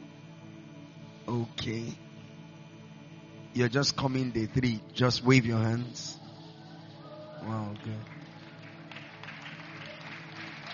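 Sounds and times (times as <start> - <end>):
low sustained tones: 0.0 - 8.8
speech: 1.3 - 2.0, 3.6 - 6.2, 7.4 - 8.2
audience clapping at a religious gathering: 7.4 - 10.7.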